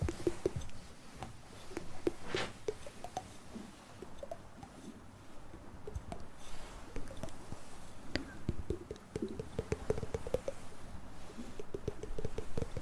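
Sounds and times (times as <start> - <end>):
soft mouth sounds: 0.0 - 0.9, 1.5 - 3.4, 5.8 - 12.8
tapping: 0.0 - 3.3, 4.0 - 4.8, 5.9 - 12.8.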